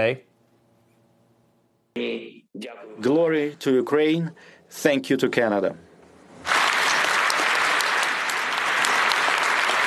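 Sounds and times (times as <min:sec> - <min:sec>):
speech: 0:00.0 - 0:00.3, 0:02.0 - 0:05.9
large parliament audience applause: 0:06.4 - 0:09.8.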